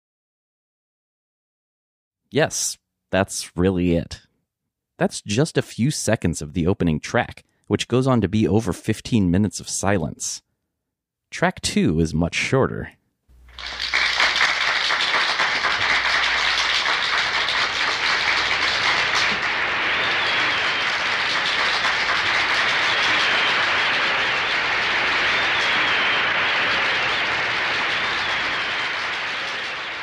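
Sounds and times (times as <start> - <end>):
speech: 2.3 - 4.3, 5.0 - 10.5, 11.3 - 13.0
recorded audience applause: 13.4 - 30.0.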